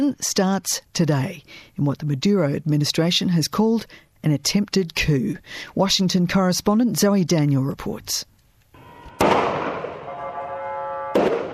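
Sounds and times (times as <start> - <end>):
speech: 0.0 - 8.3
live gunfire on the streets of Caracas: 9.1 - 10.2, 11.1 - 11.5.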